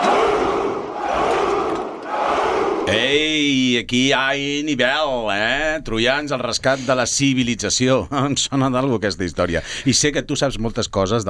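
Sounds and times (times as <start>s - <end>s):
crowd shouting a battle cry: 0.0s - 3.0s
speech: 2.9s - 11.2s.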